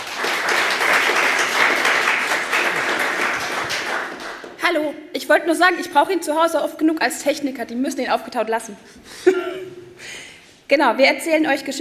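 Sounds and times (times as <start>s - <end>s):
audience applause: 0.0s - 4.6s
speech: 4.7s - 9.6s, 10.7s - 11.7s.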